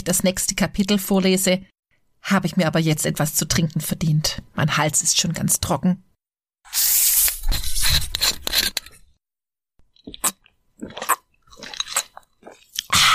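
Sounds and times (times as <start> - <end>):
speech: 0.0 - 6.9
person chewing a chocolate biscuit: 9.9 - 13.0.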